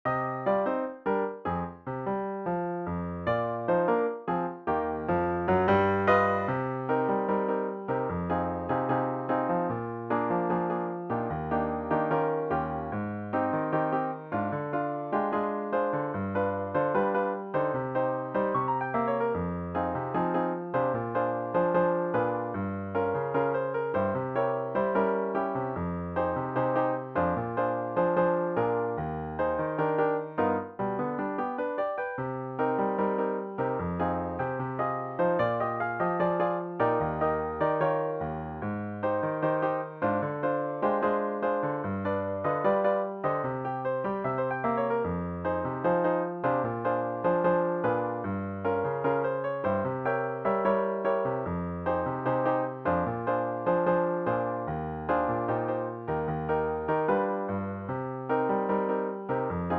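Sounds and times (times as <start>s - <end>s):
piano: 0.0s - 59.7s.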